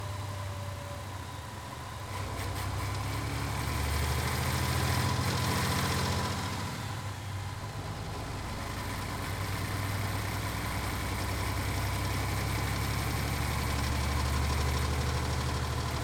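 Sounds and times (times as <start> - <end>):
coach engine heard on board while driving: 0.0 - 16.0.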